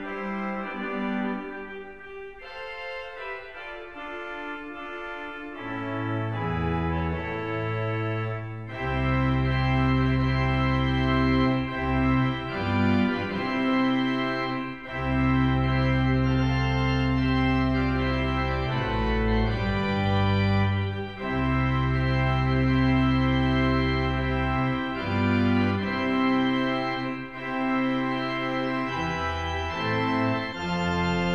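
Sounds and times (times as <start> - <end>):
wedding march on the pipe organ: 0.0 - 31.3.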